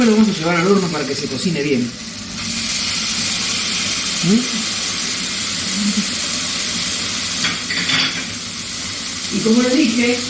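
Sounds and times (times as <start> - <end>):
speech: 0.0 - 2.5, 4.2 - 4.6, 9.3 - 10.2
salmon searing in a hot pan: 0.0 - 10.2
cookware scraping: 7.4 - 8.4.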